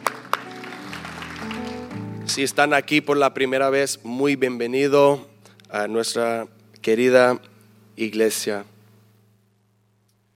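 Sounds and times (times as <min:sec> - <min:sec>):
church audience applause: 0:00.0 - 0:02.0
speech: 0:02.4 - 0:08.7.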